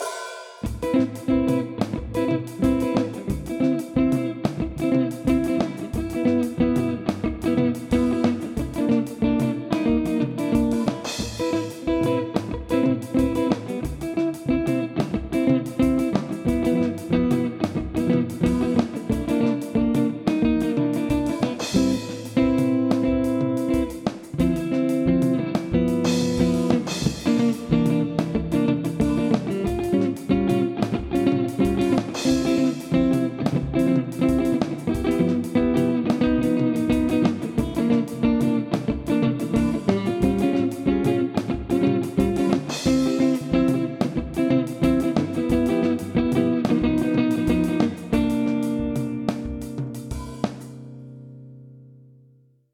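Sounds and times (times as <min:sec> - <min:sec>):
guitar: 0:00.0 - 0:52.6.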